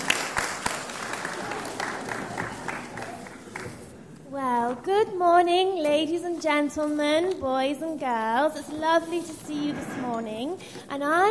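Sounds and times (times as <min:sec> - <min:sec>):
audience clapping: 0:00.0 - 0:04.1
speech: 0:04.8 - 0:11.2.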